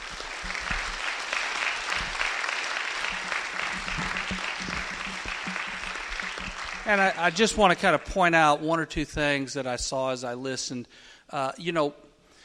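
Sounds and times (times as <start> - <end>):
congregation applause in a church: 0.0 - 8.3
speech: 6.9 - 12.0.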